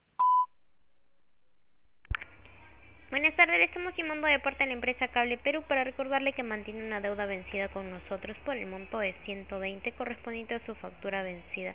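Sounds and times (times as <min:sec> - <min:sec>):
voicemail beep on a phone line: 0:00.2 - 0:00.5
speech: 0:03.1 - 0:11.7.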